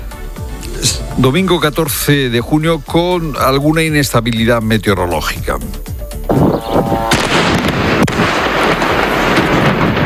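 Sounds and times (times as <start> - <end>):
speech: 0.8 - 7.0
continuous loud rumbling roar: 6.3 - 8.1
explosions from Israeli bombing of Lebanon: 6.3 - 10.0.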